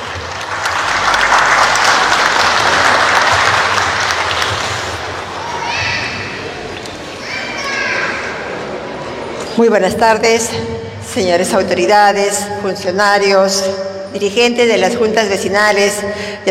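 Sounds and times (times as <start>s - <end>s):
crowd applause: 0.0s - 9.4s
children's excited voices and shouts: 5.2s - 9.4s
speech: 9.6s - 16.4s.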